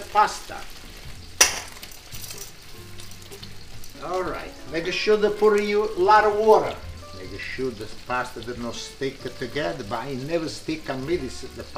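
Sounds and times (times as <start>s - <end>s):
tomato sizzling in hot pan: 0.0s - 11.7s
speech: 0.1s - 0.8s, 4.0s - 11.7s
tomato popping in pan: 1.4s - 1.9s.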